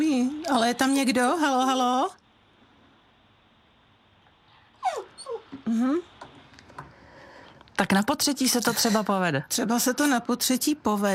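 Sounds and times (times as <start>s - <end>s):
speech: 0.0s - 2.2s, 5.7s - 6.2s, 7.8s - 11.1s
faint noise: 0.0s - 11.1s
dogs whining: 4.7s - 5.6s.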